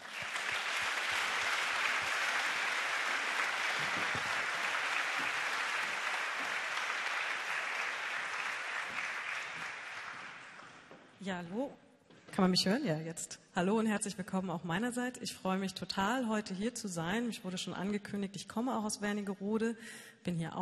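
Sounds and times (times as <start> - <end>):
audience applause: 0.0 - 10.8
speech: 11.2 - 11.8, 12.4 - 20.6.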